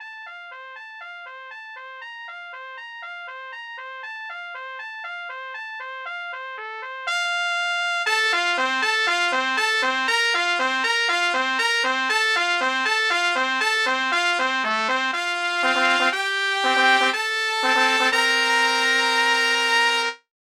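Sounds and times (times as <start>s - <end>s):
three trumpets playing a duet: 7.1s - 20.2s.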